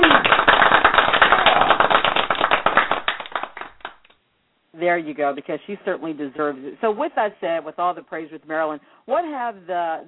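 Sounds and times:
canned applause sound effect: 0.0 - 4.2
speech: 4.8 - 10.0.

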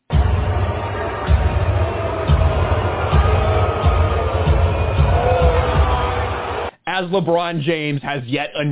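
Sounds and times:
dull rhythmic thumps: 0.1 - 6.7
large arena crowd booing: 0.1 - 6.7
speech: 7.0 - 8.7.

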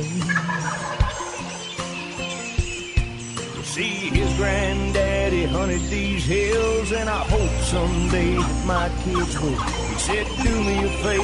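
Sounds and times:
wild turkey gobbler gobbling: 0.2 - 2.5, 8.0 - 11.2
speech: 3.8 - 11.2.

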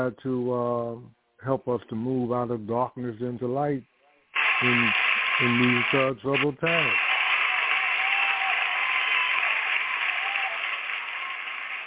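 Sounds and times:
speech: 0.0 - 3.9, 4.6 - 7.1
audience applause: 4.4 - 6.1, 6.7 - 11.8.

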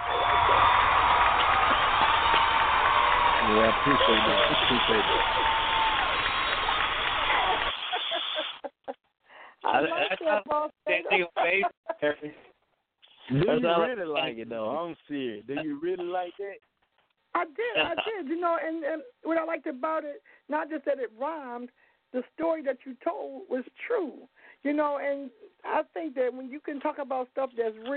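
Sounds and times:
applause and cheering sound effect: 0.0 - 8.4
laughter: 3.4 - 5.7, 7.2 - 9.0, 9.6 - 12.2, 13.3 - 14.5, 17.6 - 18.2
speech: 3.5 - 5.6, 9.9 - 11.8, 13.3 - 16.7, 17.4 - 27.9.

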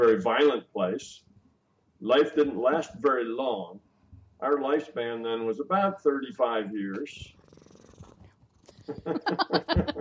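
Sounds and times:
speech: 0.0 - 1.3, 2.0 - 7.4, 8.9 - 10.0
cat purring: 7.1 - 9.7
laughter: 8.8 - 10.0.

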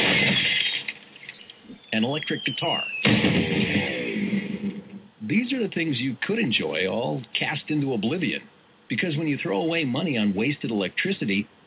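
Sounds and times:
stylish glass coffee table smashing after a fall: 0.0 - 1.4
speech: 2.0 - 3.9, 5.3 - 11.6.

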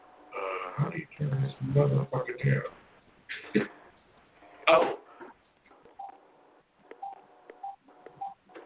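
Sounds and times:
speech: 0.8 - 3.7
phone ringing: 5.8 - 6.2, 6.9 - 8.6.

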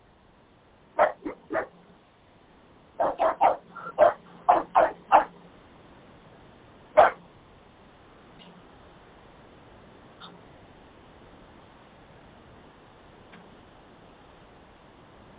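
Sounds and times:
young dog barking: 1.0 - 1.8, 3.0 - 5.4, 7.0 - 7.2.

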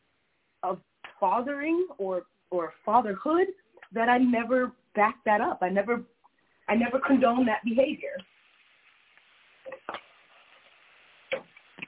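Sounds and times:
speech: 0.6 - 6.1, 6.7 - 8.3
food sizzling in a pan: 7.1 - 11.8.

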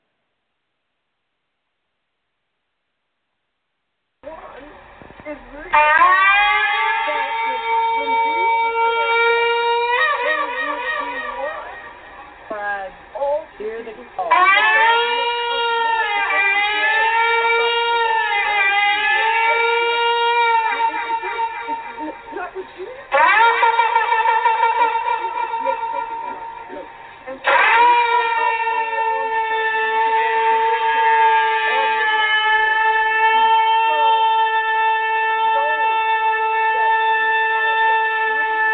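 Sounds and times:
speech: 5.3 - 6.2
shofar ram's horn blasts: 5.7 - 13.1, 14.2 - 38.7
laughter: 19.0 - 27.5.

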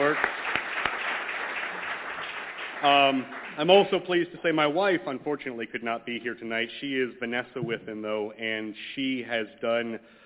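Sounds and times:
crowd applauding: 0.0 - 4.9
speech: 2.8 - 10.2.

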